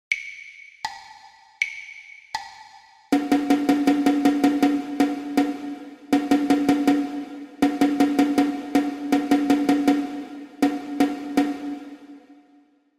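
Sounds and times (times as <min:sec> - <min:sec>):
rhythmic dictation exercise for ear training: 0:00.1 - 0:12.5.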